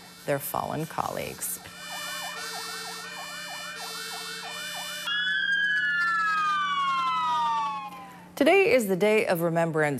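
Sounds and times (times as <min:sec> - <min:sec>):
speech: 0:00.2 - 0:01.7, 0:08.4 - 0:09.9
fire department sirens wailing: 0:01.7 - 0:08.4.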